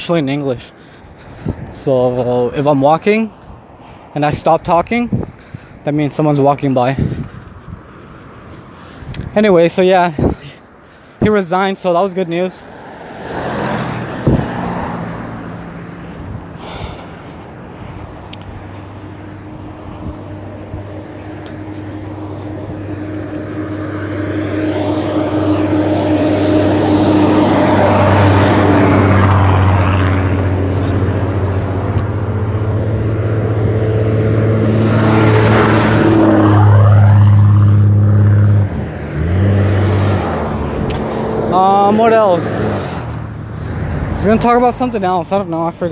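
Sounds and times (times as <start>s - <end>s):
speech: 0.0s - 0.8s, 1.4s - 3.4s, 4.2s - 5.2s, 5.8s - 7.2s, 9.4s - 10.6s, 11.2s - 12.8s, 44.2s - 45.9s
buses passing by on the road: 0.0s - 45.9s.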